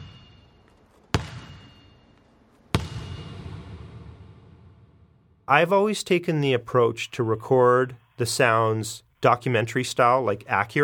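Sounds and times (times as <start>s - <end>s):
metallic ping from slammed basketball: 0.0s - 3.6s
basketball slammed on gym floor: 1.1s - 1.7s, 2.7s - 4.8s
speech: 5.5s - 10.8s.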